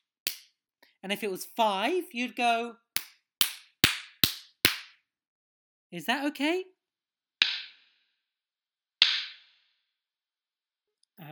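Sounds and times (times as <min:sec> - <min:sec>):
speech: 0:01.0 - 0:02.8, 0:05.9 - 0:06.8
person clapping out a number: 0:03.0 - 0:04.9.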